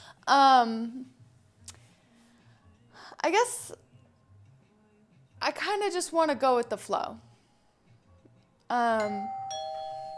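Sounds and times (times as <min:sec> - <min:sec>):
speech: 0:00.3 - 0:01.2, 0:03.2 - 0:03.8, 0:05.5 - 0:07.3, 0:08.7 - 0:09.4
doorbell ringing: 0:09.0 - 0:10.1.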